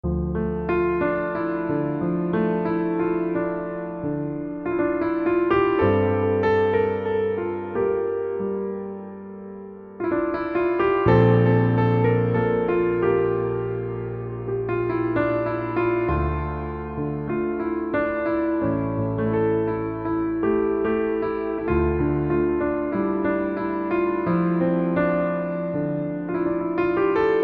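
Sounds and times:
piano: 0:00.0 - 0:27.4.

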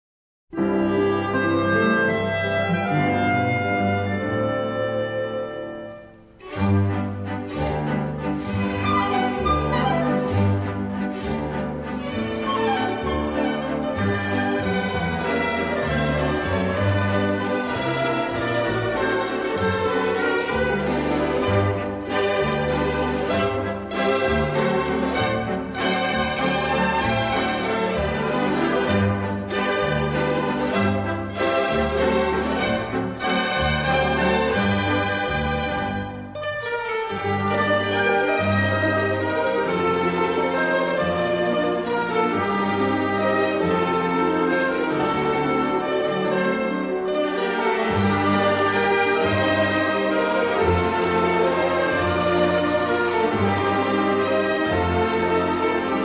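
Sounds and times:
waltz music: 0:00.5 - 0:56.0.

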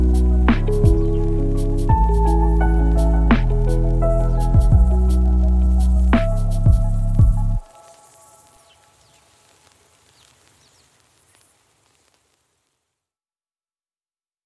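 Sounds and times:
instrumental lofi music: 0:00.0 - 0:10.5.

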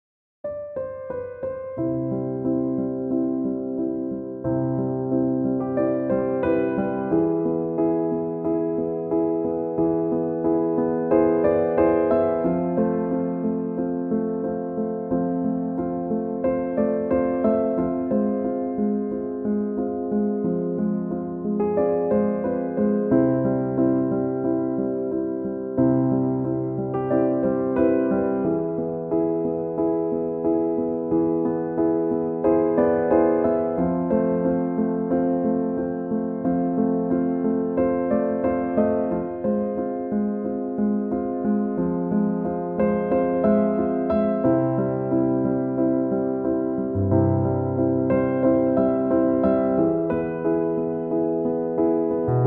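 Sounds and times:
piano instrumental: 0:00.4 - 0:52.4.

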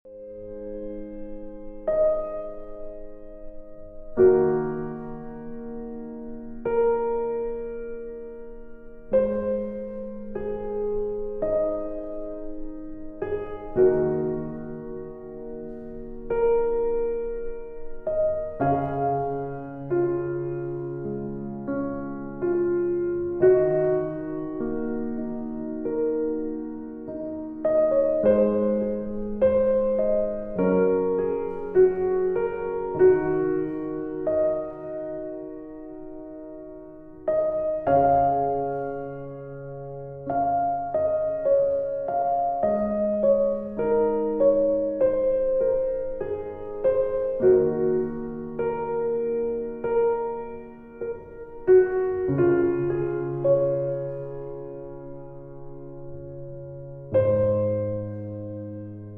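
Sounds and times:
peaceful piano: 0:00.0 - 0:59.1.

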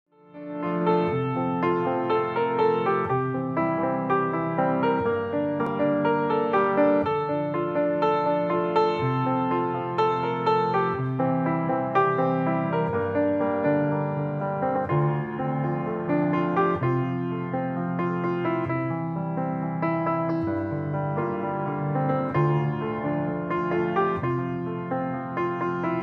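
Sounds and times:
instrumental pop music: 0:00.4 - 0:26.0.

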